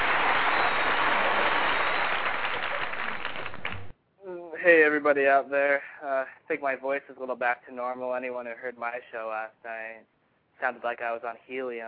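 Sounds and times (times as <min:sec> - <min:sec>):
applause: 0:00.0 - 0:03.9
speech: 0:05.0 - 0:11.8.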